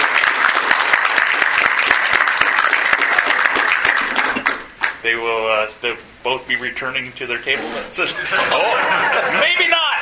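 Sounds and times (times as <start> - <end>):
audience round of applause: 0.0 - 4.7
speech: 5.1 - 9.9
laughter: 8.0 - 9.9.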